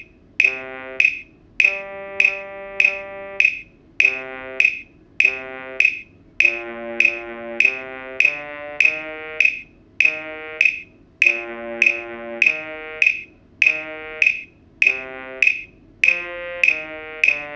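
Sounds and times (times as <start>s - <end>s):
bass trombone: 0.4s - 1.0s, 1.6s - 3.4s, 4.0s - 4.6s, 5.2s - 5.8s, 6.4s - 9.4s, 10.0s - 10.6s, 11.2s - 17.5s.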